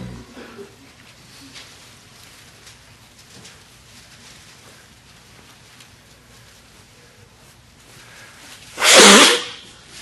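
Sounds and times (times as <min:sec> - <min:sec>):
nose blowing: 0:00.0 - 0:00.6, 0:08.8 - 0:09.7.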